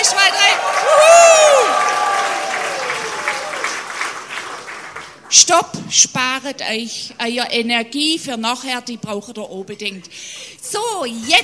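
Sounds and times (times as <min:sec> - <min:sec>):
crowd cheer or whoop: 0:00.0 - 0:05.2
audience applause: 0:00.0 - 0:05.3
speech: 0:05.4 - 0:11.4.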